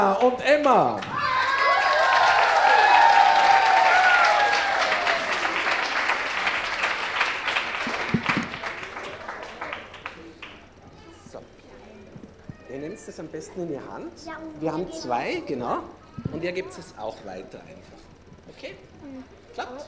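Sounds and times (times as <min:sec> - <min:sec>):
speech: 0:00.0 - 0:01.1, 0:13.2 - 0:19.8
audience applause: 0:00.0 - 0:10.8
whoops and shouts: 0:01.1 - 0:05.5.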